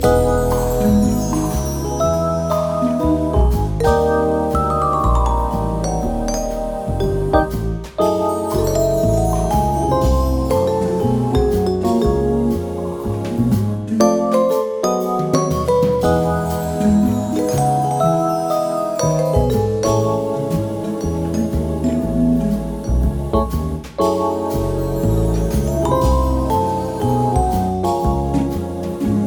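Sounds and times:
subscription and lucky spin game music: 0.0s - 13.0s, 14.0s - 29.1s.

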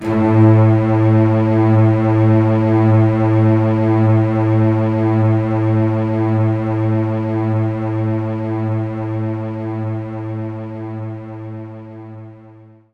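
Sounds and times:
string loop: 0.0s - 12.0s.

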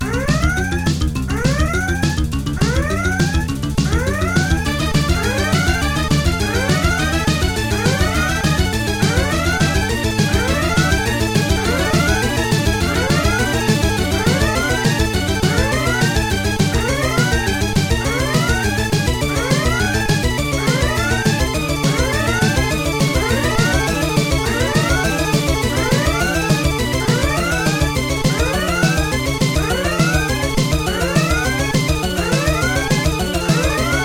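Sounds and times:
pinball multiball restart sound effect: 0.0s - 34.0s.

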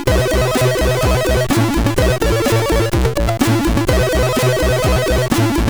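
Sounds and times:
Commodore 64 SID stereo chiptune music: 0.1s - 5.6s.

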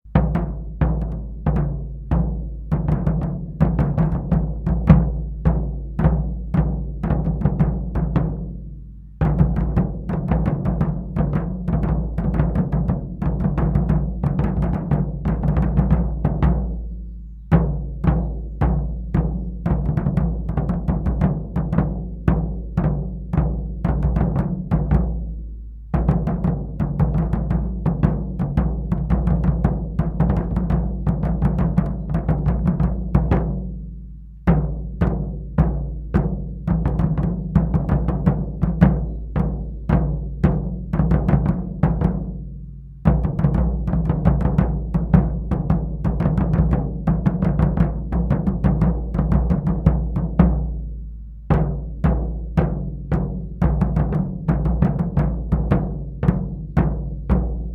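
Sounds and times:
Civil War march drums: 0.1s - 57.7s.

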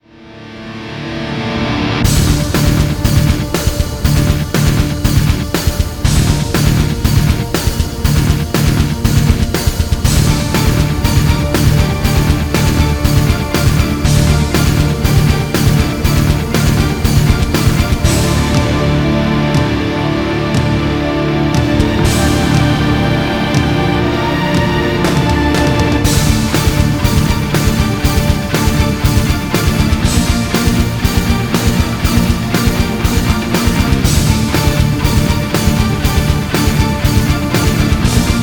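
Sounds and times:
action music: 0.0s - 38.4s.

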